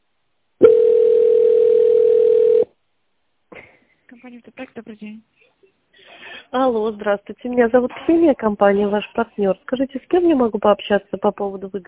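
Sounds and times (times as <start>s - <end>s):
telephone ringback tone: 0.6s - 2.7s
speech: 4.3s - 5.5s, 6.5s - 11.8s.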